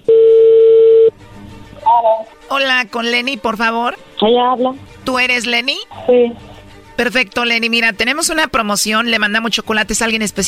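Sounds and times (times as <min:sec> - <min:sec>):
telephone dial tone: 0:00.1 - 0:01.1
speech: 0:02.0 - 0:10.4.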